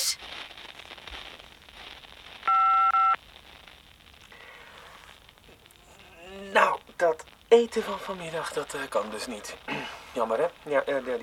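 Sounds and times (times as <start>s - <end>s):
faint hiss: 0.0s - 11.2s
answering machine beep: 2.5s - 3.2s
speech: 7.6s - 11.2s.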